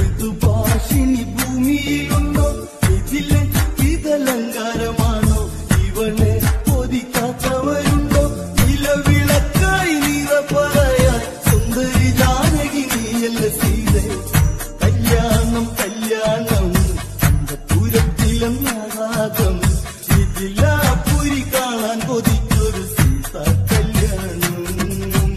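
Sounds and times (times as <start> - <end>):
Malayalam devotional ringtone: 0.2 - 25.3.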